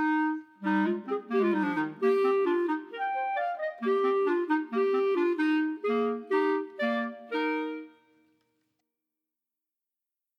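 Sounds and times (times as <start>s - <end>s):
chamber music for clarinets minus first part: 0.0s - 8.1s.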